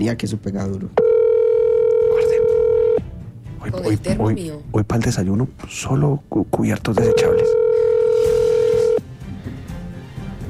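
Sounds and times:
speech: 0.0 - 1.1, 3.6 - 7.6
electronic telephone ringing tone: 1.0 - 3.0, 7.0 - 9.0.

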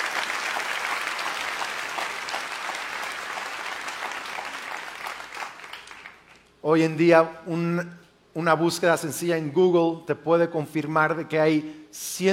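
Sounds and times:
audience applause: 0.0 - 6.4
speech: 6.6 - 12.3.

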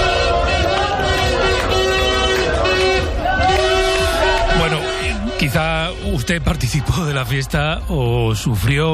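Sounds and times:
car horns blaring at street celebration: 0.0 - 7.5
crowd cheering and chatter: 0.0 - 8.9
speech: 5.6 - 8.9.

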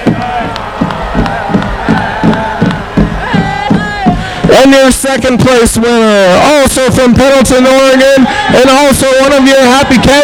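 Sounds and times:
crowd applause: 0.0 - 4.7, 7.8 - 10.2
crowd cheering: 0.0 - 10.2
speech: 4.6 - 10.2.

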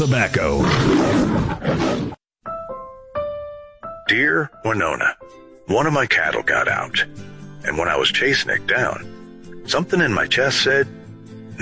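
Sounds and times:
speech: 0.0 - 2.2, 4.1 - 11.0
lion roar: 0.4 - 2.2.

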